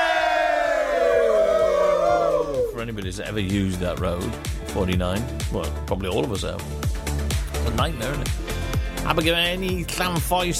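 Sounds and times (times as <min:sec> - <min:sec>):
crowd cheering hooray sound effect: 0:00.0 - 0:02.9
speech: 0:02.9 - 0:10.5.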